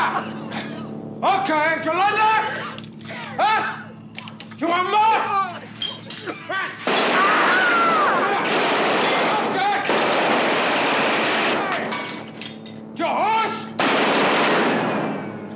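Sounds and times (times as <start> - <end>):
laughter: 0.0 - 1.0, 2.3 - 4.0
speech: 1.2 - 3.8, 4.6 - 5.6
machine gun fire from a movie scene: 6.8 - 11.9, 13.8 - 15.4.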